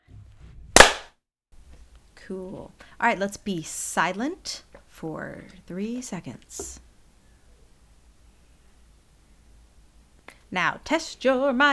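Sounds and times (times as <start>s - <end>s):
hand clap for sync: 0.8s - 1.1s
speech: 2.3s - 6.8s, 10.5s - 11.7s.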